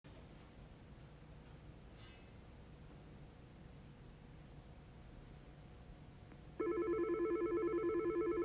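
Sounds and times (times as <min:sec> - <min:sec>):
telephone ringing: 0:06.6 - 0:08.4.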